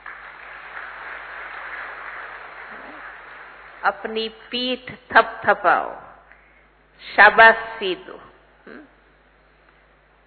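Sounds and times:
audience applause: 0.0s - 3.9s
speech: 3.8s - 6.1s, 7.0s - 8.9s.

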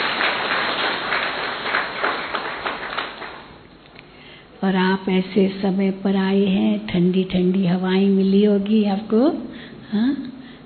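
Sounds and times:
audience clapping: 0.0s - 3.7s
speech: 4.7s - 10.3s.

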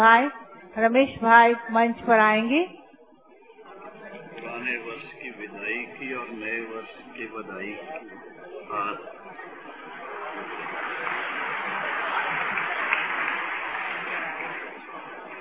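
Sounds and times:
speech: 0.0s - 2.8s, 4.6s - 9.2s
murmur of voices: 0.0s - 15.4s
audience applause for a bouquet presentation on stage at a New Year gathering: 8.8s - 15.4s.

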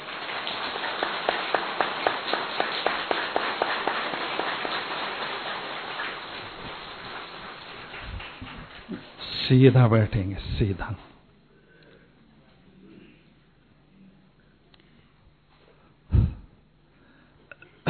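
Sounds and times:
group clapping: 0.0s - 9.2s
speech: 9.5s - 11.1s.

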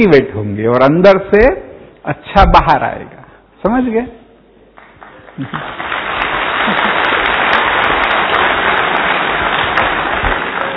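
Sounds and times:
speech: 0.0s - 4.2s, 5.4s - 6.0s
audience clapping: 4.7s - 10.7s.

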